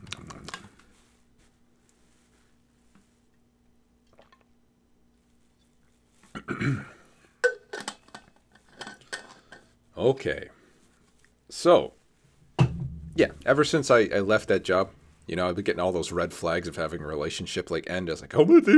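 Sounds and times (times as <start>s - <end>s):
person drinking water: 4.0s - 4.6s
speech: 6.5s - 6.9s, 10.0s - 10.6s, 11.5s - 12.0s, 13.2s - 18.7s.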